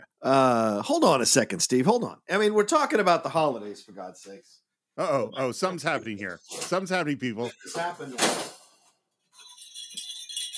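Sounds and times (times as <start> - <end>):
speech: 0.2 - 8.5
jingle bells ringing: 9.3 - 10.5.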